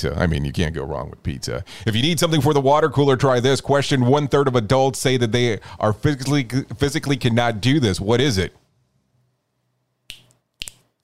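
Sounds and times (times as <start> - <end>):
speech: 0.0 - 8.6
finger snapping: 10.1 - 11.0.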